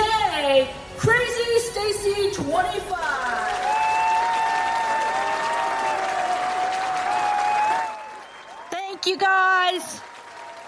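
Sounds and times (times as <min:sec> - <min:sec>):
crowd noise at a live show: 0:00.0 - 0:10.6
audience at a live show applauding the host: 0:03.2 - 0:10.6
speech: 0:09.1 - 0:10.1.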